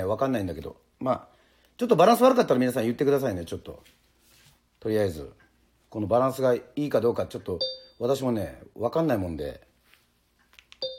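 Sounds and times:
speech: 0.0s - 4.0s, 4.8s - 9.7s
short electronic beep: 7.6s - 8.0s.

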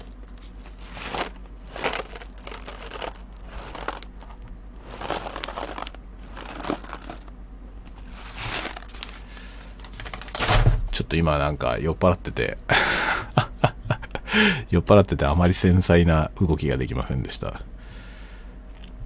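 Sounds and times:
bag of Tully's coffee beans crinkling: 0.0s - 10.6s
speech: 11.0s - 12.7s, 14.4s - 17.7s
laughter: 12.7s - 14.3s.

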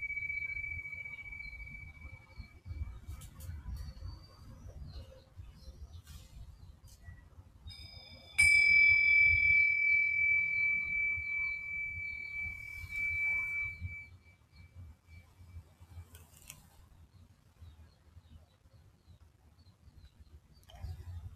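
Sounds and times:
Tibetan singing bowl ringing: 0.0s - 2.5s, 7.7s - 15.2s.

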